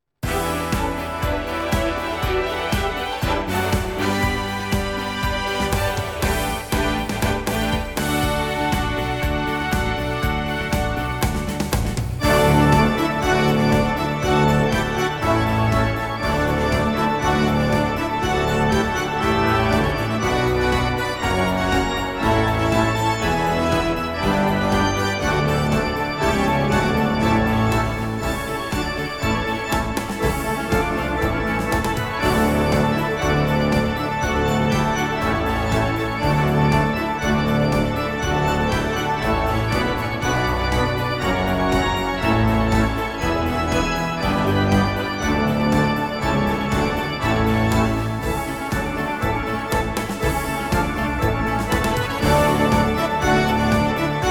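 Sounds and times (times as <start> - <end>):
fanfare: 0.2 - 54.2.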